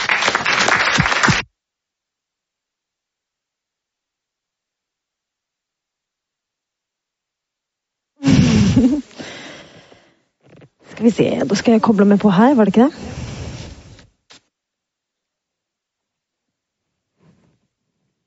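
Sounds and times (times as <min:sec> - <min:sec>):
audience applause: 0:00.0 - 0:01.4
speech: 0:11.0 - 0:13.2.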